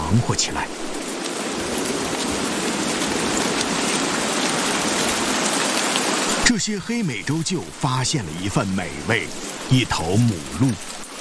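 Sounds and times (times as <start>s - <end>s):
heavy downpour of rain: 0.0s - 11.1s
speech: 0.1s - 1.0s, 6.5s - 11.0s.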